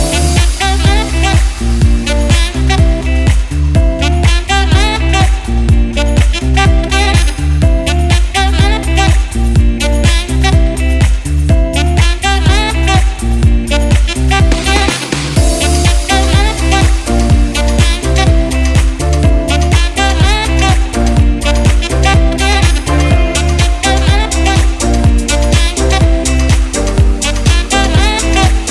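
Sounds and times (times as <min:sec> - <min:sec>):
saxophone: 0:00.0 - 0:28.6.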